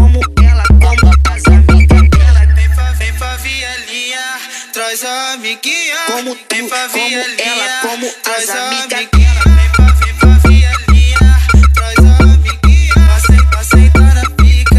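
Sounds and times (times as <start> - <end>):
mega bass: 0.0 - 3.8, 9.2 - 14.7.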